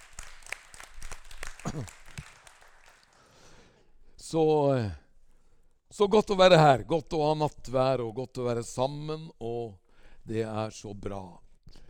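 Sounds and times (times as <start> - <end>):
audience clapping: 0.0 - 3.6
speech: 1.7 - 2.0, 4.3 - 5.0, 5.9 - 11.4.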